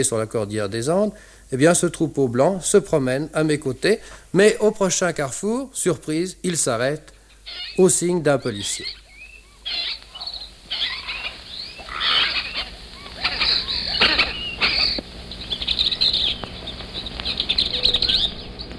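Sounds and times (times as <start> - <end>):
speech: 0.0 - 9.0
tame parakeets calling in the street in Cusco: 6.5 - 18.7.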